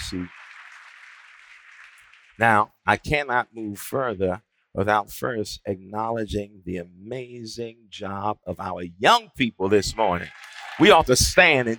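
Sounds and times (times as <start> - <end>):
audience hand clapping: 0.0 - 2.6, 10.2 - 11.7
speech: 0.1 - 0.4, 2.4 - 11.7.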